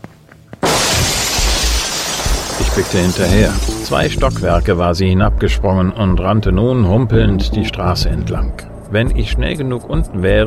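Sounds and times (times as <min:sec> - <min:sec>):
glass window shattering as a woman jumps through it: 0:00.6 - 0:04.7
speech: 0:02.8 - 0:10.4.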